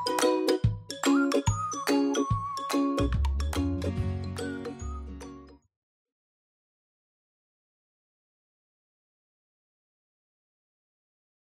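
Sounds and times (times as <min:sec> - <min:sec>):
happy ukulele instrumental music: 0:00.0 - 0:05.6.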